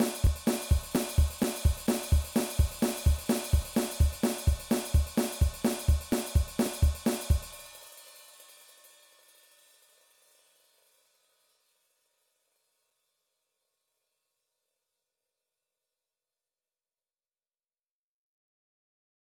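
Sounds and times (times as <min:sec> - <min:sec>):
rock drum beat: 0:00.0 - 0:07.7.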